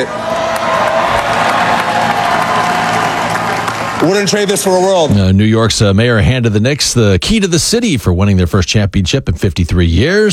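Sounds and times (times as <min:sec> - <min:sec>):
speech: 0:00.0 - 0:00.2, 0:04.0 - 0:10.3
large crowd cheering and clapping at parade: 0:00.0 - 0:05.4.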